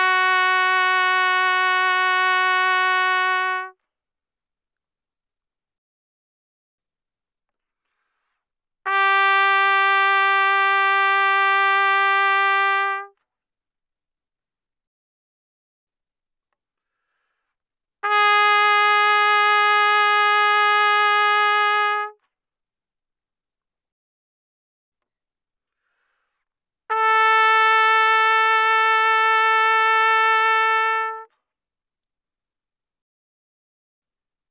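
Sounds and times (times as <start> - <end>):
trumpet playing loud notes with vibrato: 0.0 - 3.8, 8.9 - 13.1, 18.0 - 22.2, 26.9 - 31.3.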